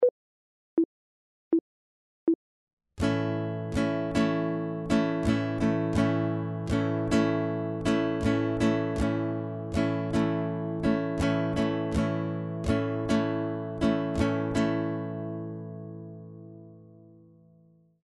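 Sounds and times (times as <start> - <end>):
guitar chord: 3.0 - 17.2.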